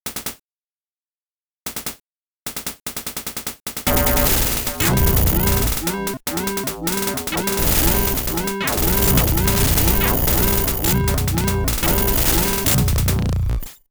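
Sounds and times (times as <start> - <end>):
MSX 2 chiptune jingle: 3.9 - 13.7.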